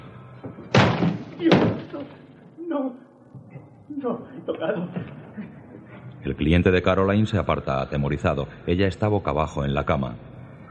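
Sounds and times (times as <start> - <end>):
door being broken down: 0.7 - 2.2
voices: 1.3 - 10.6
speech: 1.4 - 3.1, 4.0 - 5.6, 6.2 - 10.4
laughter: 3.9 - 6.1.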